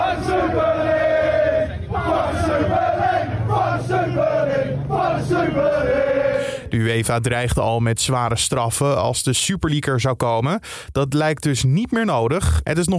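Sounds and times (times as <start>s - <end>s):
football fans chanting in protest in London: 0.0s - 6.7s
speech: 6.7s - 12.9s.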